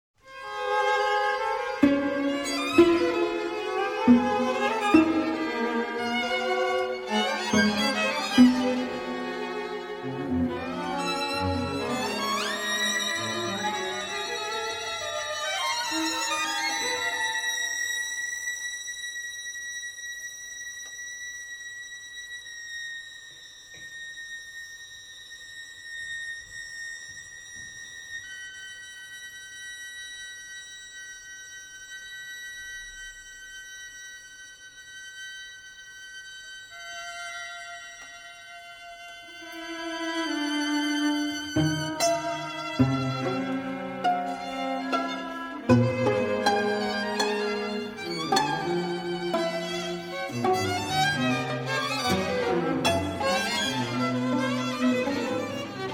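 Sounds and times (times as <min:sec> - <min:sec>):
string quartet: 0:00.3 - 0:21.1, 0:34.7 - 0:55.9.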